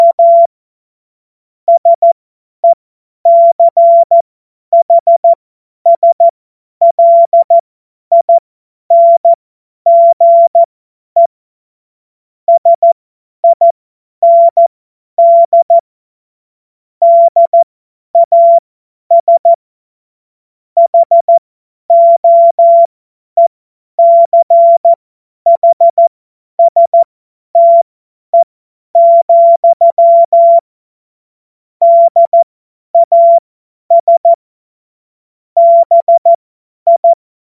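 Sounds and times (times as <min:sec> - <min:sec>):
CW Morse code beeps: 0:00.0 - 0:00.5, 0:01.7 - 0:04.2, 0:04.8 - 0:11.3, 0:12.5 - 0:15.8, 0:17.0 - 0:19.6, 0:20.8 - 0:27.8, 0:28.4 - 0:30.7, 0:31.8 - 0:32.4, 0:33.0 - 0:34.4, 0:35.6 - 0:37.2.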